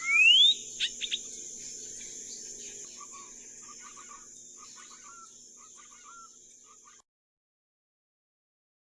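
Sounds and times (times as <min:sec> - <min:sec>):
Saltator coerulescens: 0:00.0 - 0:07.0.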